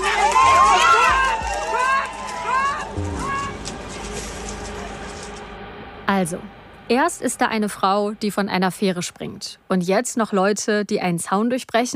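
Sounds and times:
protesters shouting: 0.0s - 5.0s
protesters running: 0.0s - 5.4s
speech: 6.1s - 11.9s.

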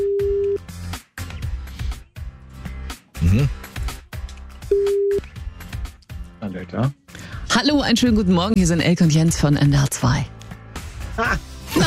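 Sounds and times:
phone ringback tone beeps: 0.0s - 0.6s, 4.7s - 5.2s
music: 0.0s - 11.8s
speech: 3.3s - 3.6s, 6.6s - 7.0s, 7.6s - 10.4s, 11.2s - 11.8s.

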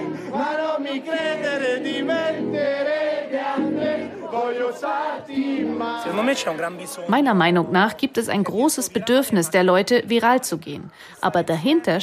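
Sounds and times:
young crowd singing along loudly: 0.0s - 8.0s
speech: 0.3s - 2.8s, 4.5s - 12.0s.

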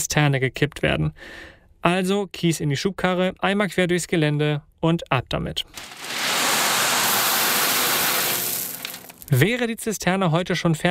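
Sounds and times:
speech: 0.1s - 6.2s, 9.3s - 10.8s
rain pattering down: 6.2s - 9.4s.

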